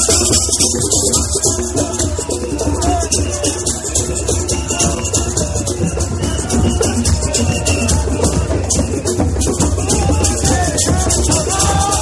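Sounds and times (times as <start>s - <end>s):
drums at an anti-racist demonstration: 0.0s - 12.0s
people shouting at an anti-racist demonstration: 0.1s - 12.0s
whistles at an anti-racist demonstration: 6.2s - 9.0s.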